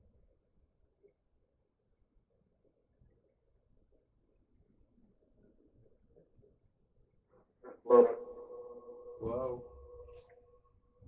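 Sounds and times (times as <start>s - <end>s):
spirit box radio sweep in a couples room: 7.9s - 10.3s.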